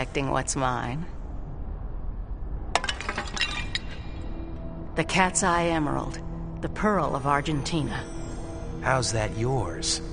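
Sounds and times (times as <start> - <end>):
low steady rumble: 0.0 - 10.1
speech: 0.1 - 1.2, 5.0 - 8.1, 8.8 - 10.1
ceramic pots breaking: 2.8 - 4.2.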